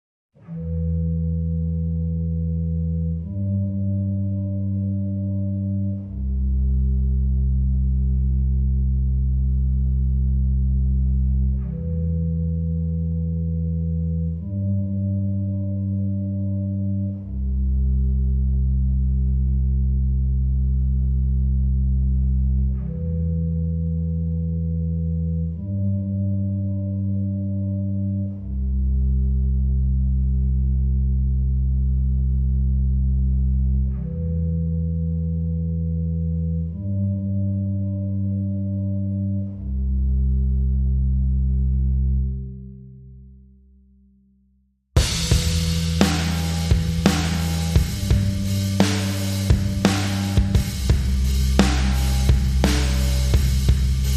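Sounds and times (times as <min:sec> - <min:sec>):
bass: 0:00.0 - 0:54.1
drums: 0:45.0 - 0:54.1.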